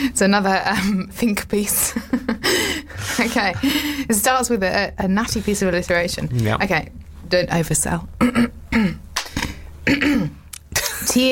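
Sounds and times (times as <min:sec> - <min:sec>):
speech: 0:00.0 - 0:09.0, 0:11.1 - 0:11.3
laughter: 0:01.8 - 0:04.1
person clearing throat: 0:08.2 - 0:11.1.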